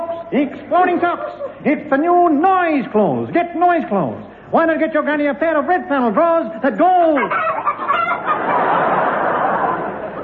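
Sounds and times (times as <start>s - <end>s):
speech: 0.3s - 8.3s
hen cackling sound effect: 1.0s - 1.6s, 7.0s - 10.2s.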